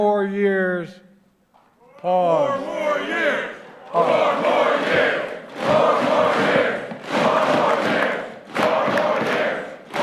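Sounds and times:
speech: 0.0s - 1.1s, 2.0s - 6.5s
crowd chanting a slogan: 2.4s - 10.0s.

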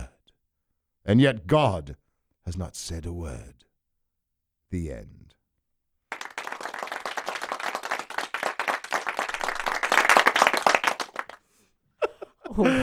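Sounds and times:
speech: 1.1s - 3.6s, 4.7s - 5.4s, 12.5s - 12.8s
studio audience applause after a poem reading: 6.1s - 11.4s
laughter: 12.0s - 12.8s.

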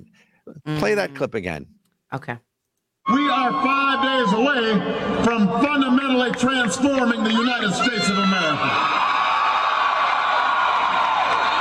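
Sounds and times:
speech: 0.6s - 2.5s, 3.1s - 9.1s
crowd cheering and whooping at a political speech: 3.1s - 11.5s.

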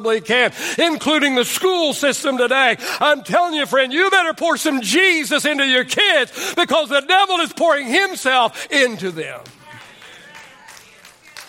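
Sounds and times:
speech: 0.0s - 9.6s
audience clapping: 8.7s - 11.4s.

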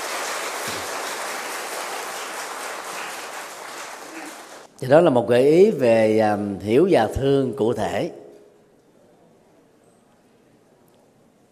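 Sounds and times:
large crowd clapping: 0.0s - 4.7s
speech: 4.8s - 8.2s.

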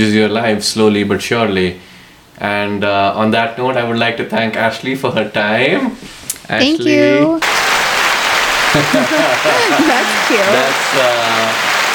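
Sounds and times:
speech: 0.0s - 7.5s, 8.8s - 11.7s
audience applauding: 7.4s - 11.9s
laughter: 7.8s - 11.9s.

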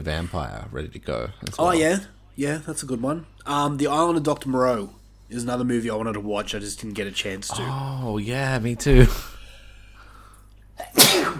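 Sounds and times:
speech: 0.0s - 9.3s
person sneezing: 10.8s - 11.3s.

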